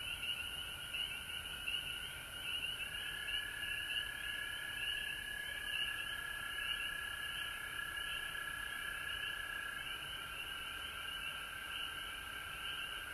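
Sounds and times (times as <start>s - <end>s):
frog chorus trilled pulses: 0.0s - 13.1s.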